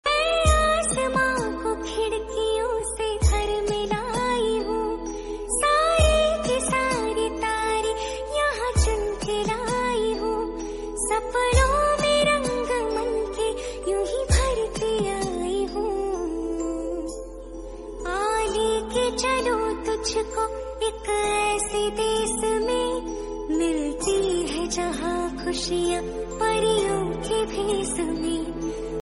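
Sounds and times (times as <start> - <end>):
Hindi love song ringtone: 0.1 - 29.0.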